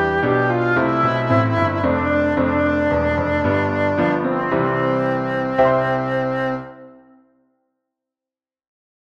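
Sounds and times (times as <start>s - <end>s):
violin: 0.0s - 7.2s
flute: 0.0s - 7.4s
oboe: 0.0s - 7.4s.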